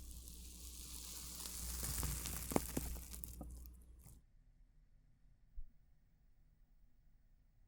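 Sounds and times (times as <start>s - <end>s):
hissing rush: 0.0s - 3.7s
water beads being crushed: 0.0s - 4.2s.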